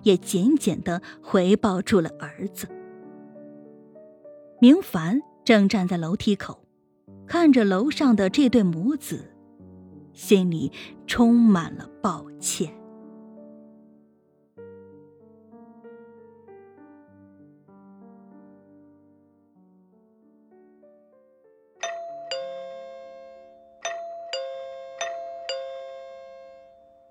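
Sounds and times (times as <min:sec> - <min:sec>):
speech: 0:00.0 - 0:02.8, 0:04.6 - 0:06.6, 0:07.3 - 0:09.3, 0:10.2 - 0:12.8
doorbell ringing: 0:21.8 - 0:27.0.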